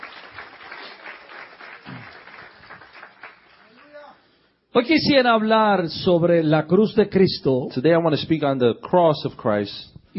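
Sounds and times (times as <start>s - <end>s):
congregation applauding during a church service: 0.0s - 4.2s
speech: 4.8s - 10.1s.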